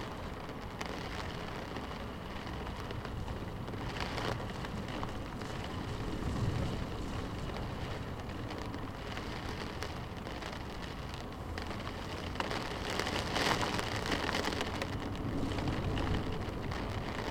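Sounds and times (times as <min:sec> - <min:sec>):
heavy rain on car window heard inside car: 0:00.0 - 0:17.2.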